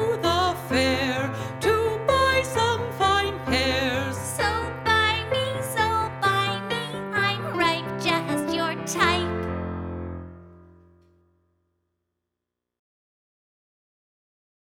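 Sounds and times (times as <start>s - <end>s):
person singing a minuet: 0.0s - 9.5s.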